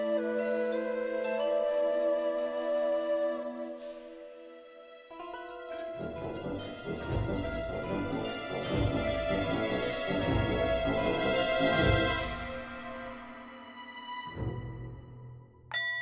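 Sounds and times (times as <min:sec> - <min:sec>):
music stem: 0:00.2 - 0:15.8.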